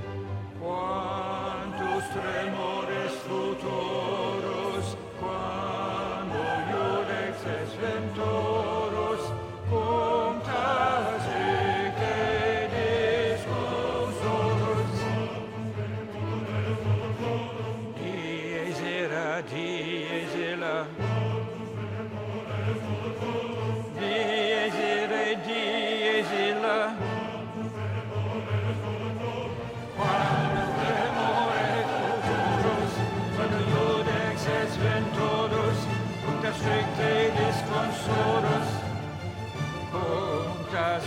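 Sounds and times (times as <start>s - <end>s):
alto voice singing: 0.0s - 41.0s.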